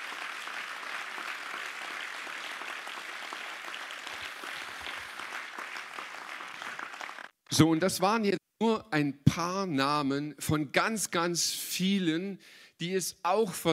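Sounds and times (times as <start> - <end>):
audience applause: 0.0 - 7.4
speech: 7.5 - 13.7.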